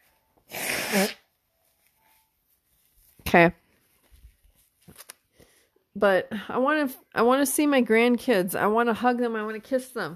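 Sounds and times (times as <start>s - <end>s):
person blowing nose: 0.4s - 1.4s
speech: 0.9s - 1.2s, 3.3s - 3.6s, 6.0s - 10.1s.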